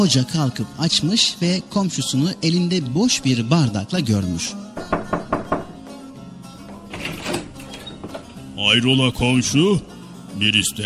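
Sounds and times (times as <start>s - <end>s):
speech: 0.0s - 5.1s, 8.6s - 10.8s
knocking on Nasrettin Hoca's door: 4.8s - 5.9s.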